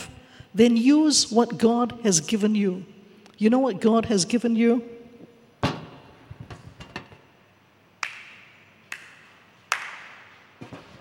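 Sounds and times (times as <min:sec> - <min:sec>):
speech: 0:00.5 - 0:05.0
hands clapping: 0:08.0 - 0:10.4.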